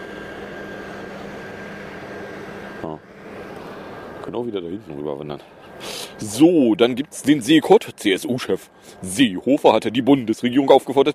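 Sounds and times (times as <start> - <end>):
leaf blower: 0.0 - 4.3
speech: 4.3 - 11.1.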